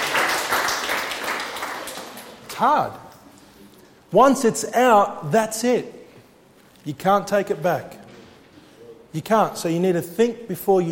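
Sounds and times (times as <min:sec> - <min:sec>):
audience clapping: 0:00.0 - 0:02.7
speech: 0:02.6 - 0:03.0, 0:04.1 - 0:06.0, 0:06.8 - 0:08.0, 0:09.1 - 0:10.9.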